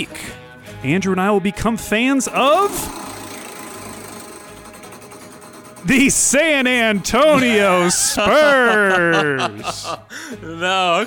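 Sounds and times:
speech: 0:00.0 - 0:03.0, 0:05.8 - 0:11.0
prize wheel spinning with mechanical whir and rattle: 0:02.1 - 0:09.1
rapid regular ticking of a prize wheel: 0:02.2 - 0:08.2
laughter: 0:07.2 - 0:10.6.

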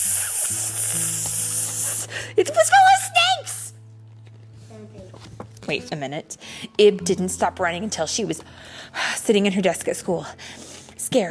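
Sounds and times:
hissing: 0:00.0 - 0:02.4
speech: 0:02.1 - 0:03.6, 0:04.8 - 0:11.3.

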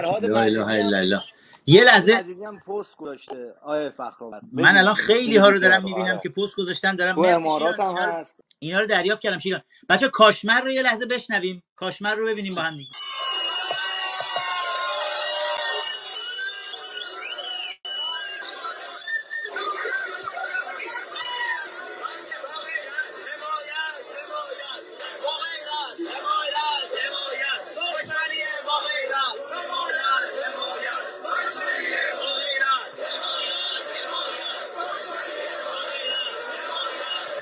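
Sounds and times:
speech: 0:00.0 - 0:13.3
street crowd shouting and chanting protest slogans: 0:13.0 - 0:37.4.

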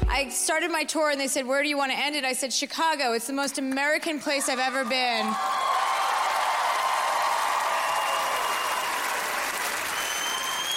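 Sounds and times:
speech: 0:00.2 - 0:05.6
audience applause: 0:04.4 - 0:10.7.

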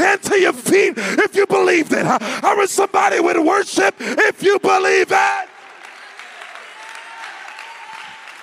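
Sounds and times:
speech: 0:00.1 - 0:05.5
audience clapping: 0:05.3 - 0:08.4.

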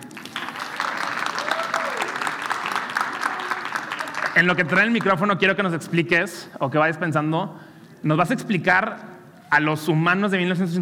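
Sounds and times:
applause: 0:00.0 - 0:05.4
speech: 0:04.4 - 0:10.8.

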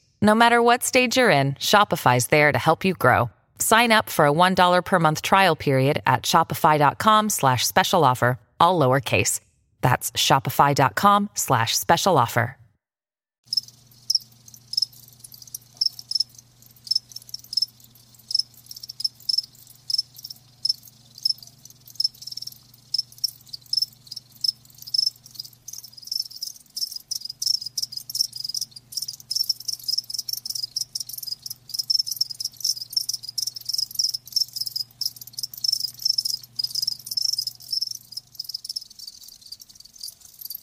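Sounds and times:
speech: 0:00.2 - 0:12.6
crickets chirping: 0:13.5 - 0:40.6.

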